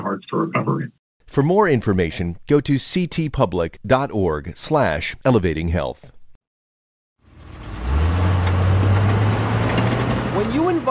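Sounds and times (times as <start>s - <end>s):
speech: 0.1s - 6.2s, 10.4s - 10.9s
Komatsu D355A bulldozer engine starting and rumbling: 7.2s - 10.9s.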